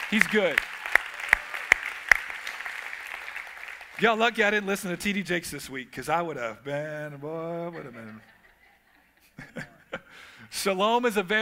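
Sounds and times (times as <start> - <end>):
large crowd applauding in praise: 0.0 - 5.0
loud evenly spaced group claps: 0.0 - 5.0
speech: 0.1 - 0.8, 4.0 - 8.4, 10.5 - 11.3
laughter: 7.3 - 10.3.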